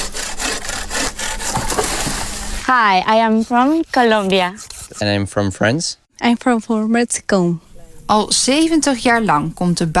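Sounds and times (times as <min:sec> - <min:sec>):
volunteers sawing wood while pruning in Drentsche Aa National Park: 0:00.0 - 0:05.2
speech: 0:02.7 - 0:09.9.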